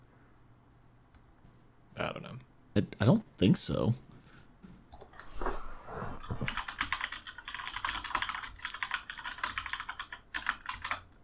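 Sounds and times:
speech: 0:02.0 - 0:04.1
keyboard typing a search into Netflix: 0:06.2 - 0:11.1.

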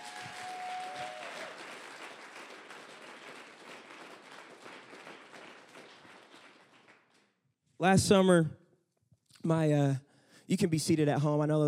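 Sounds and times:
audience applause: 0:00.0 - 0:07.2
speech: 0:07.8 - 0:08.6, 0:09.4 - 0:11.6.

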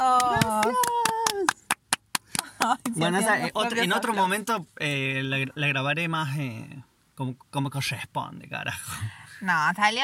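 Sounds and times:
applause: 0:00.0 - 0:03.0
speech: 0:03.0 - 0:10.0.

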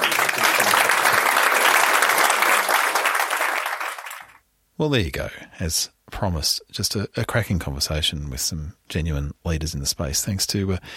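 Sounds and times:
applause for a panel: 0:00.0 - 0:04.4
speech: 0:04.8 - 0:10.9.

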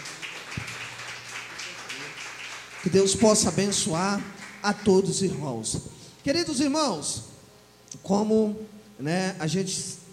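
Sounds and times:
audience hand clapping: 0:00.0 - 0:05.6
speech: 0:02.8 - 0:07.3, 0:08.0 - 0:10.0.

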